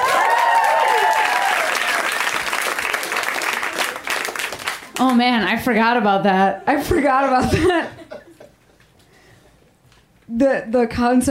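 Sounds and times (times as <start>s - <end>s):
audience applause: 0.0s - 5.2s
speech: 5.0s - 8.0s, 10.4s - 11.3s
laughter: 6.8s - 8.9s.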